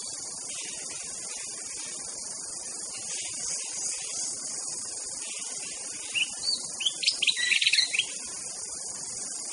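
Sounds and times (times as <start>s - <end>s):
White-rumped shama whistled song: 6.0s - 8.2s.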